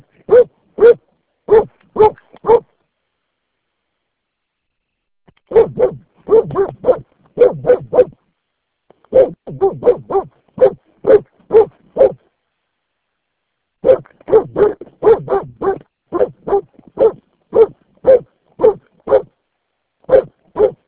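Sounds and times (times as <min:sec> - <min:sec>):
dog barking: 0:00.2 - 0:02.7, 0:05.5 - 0:08.2, 0:09.1 - 0:12.3, 0:13.8 - 0:19.3, 0:20.0 - 0:20.8.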